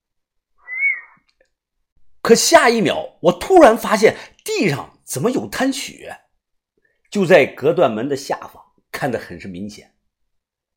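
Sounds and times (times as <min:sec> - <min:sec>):
single whistle: 0:00.6 - 0:01.2
speech: 0:02.3 - 0:06.2, 0:07.1 - 0:09.9.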